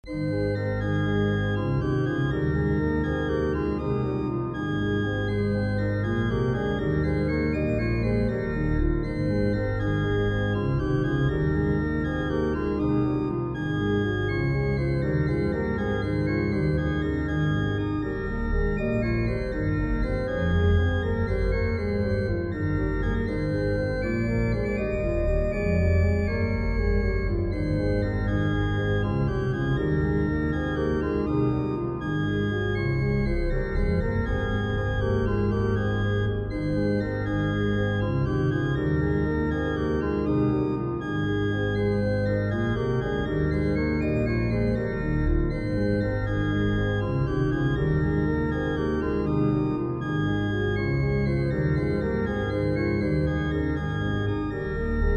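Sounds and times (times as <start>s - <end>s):
organ with reverb: 0.1s - 55.1s.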